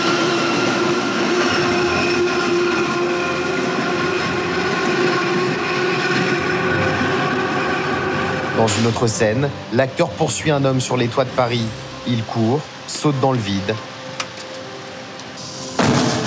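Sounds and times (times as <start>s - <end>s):
high whining tone of metro train: 0.0s - 8.9s
elevated metro train speeding over bridge: 0.0s - 16.2s
speech: 8.7s - 13.9s.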